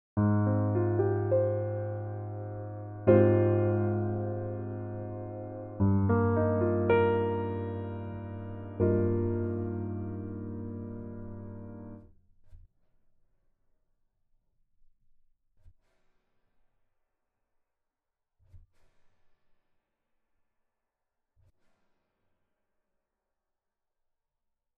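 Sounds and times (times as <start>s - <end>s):
crossover chords: 0.2s - 12.0s.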